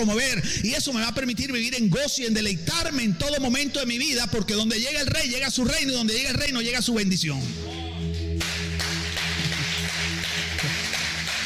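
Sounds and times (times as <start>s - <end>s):
speech: 0.0s - 7.8s
audience applause: 8.4s - 11.4s.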